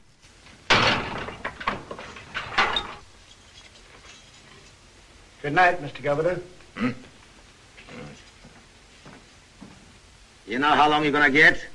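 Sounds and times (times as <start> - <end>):
heavy cell door clanging shut: 0.7 - 3.1
speech: 5.4 - 7.1, 10.5 - 11.7.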